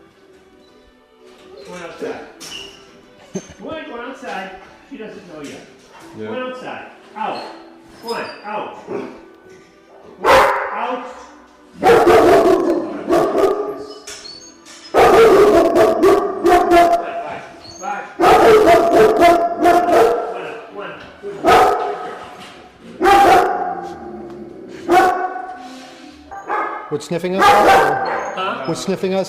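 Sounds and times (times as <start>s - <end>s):
speech: 3.6s - 9.2s, 27.0s - 29.2s
dog barking: 10.2s - 10.9s, 11.8s - 13.9s, 14.9s - 17.2s, 18.2s - 20.4s, 21.4s - 22.2s, 23.0s - 24.0s, 24.9s - 25.6s, 26.3s - 28.6s.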